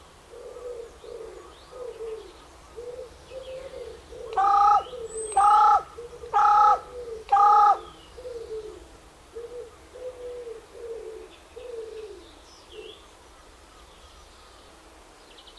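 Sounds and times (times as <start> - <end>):
carrion crow cawing: 4.2 - 7.9.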